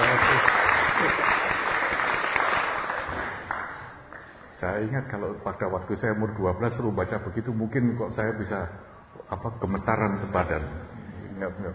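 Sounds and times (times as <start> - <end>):
applause: 0.0 - 4.4
speech: 4.8 - 11.7.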